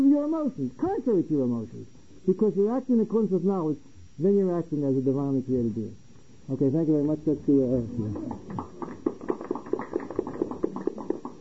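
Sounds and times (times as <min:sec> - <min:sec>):
speech: 0:00.0 - 0:09.0
audience clapping in rhythm: 0:08.1 - 0:11.4.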